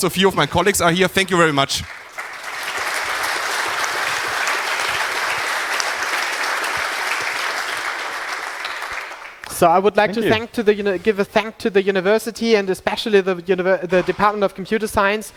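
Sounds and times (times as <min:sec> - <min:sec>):
speech: 0:00.0 - 0:02.0, 0:09.6 - 0:15.3
audience applause at a university computer science conference: 0:00.0 - 0:09.6.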